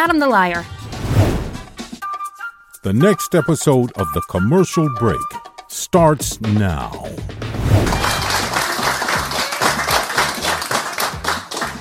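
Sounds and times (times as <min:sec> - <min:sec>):
speech: 0:00.0 - 0:00.8, 0:02.8 - 0:07.9
clapping in a played video: 0:07.8 - 0:11.7.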